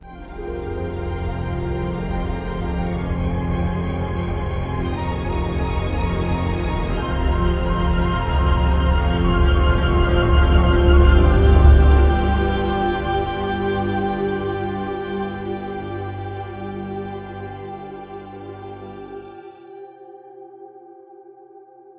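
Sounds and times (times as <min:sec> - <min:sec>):
music layer: 0:00.0 - 0:21.9.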